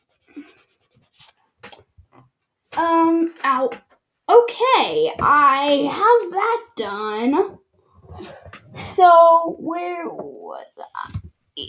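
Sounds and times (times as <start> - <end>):
erasing pen rubbing on paper: 0.0 - 1.4
speech: 2.8 - 3.8, 4.4 - 7.6, 9.0 - 11.6.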